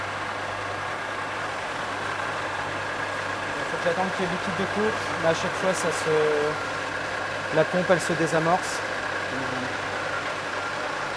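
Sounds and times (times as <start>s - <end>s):
metal lathe running in a workshop: 0.0s - 11.1s
speech: 3.8s - 6.8s, 7.5s - 9.8s.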